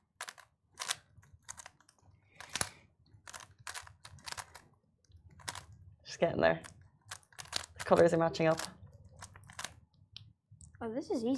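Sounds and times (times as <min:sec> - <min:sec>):
Rubik's Cube being turned and solved: 0:00.0 - 0:05.8, 0:06.6 - 0:10.0
speech: 0:06.2 - 0:06.7, 0:07.9 - 0:08.8, 0:10.8 - 0:11.3.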